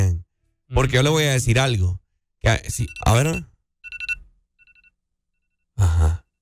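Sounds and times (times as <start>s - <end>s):
speech: 0.8s - 3.5s
phone alarm ringtone: 2.8s - 5.7s.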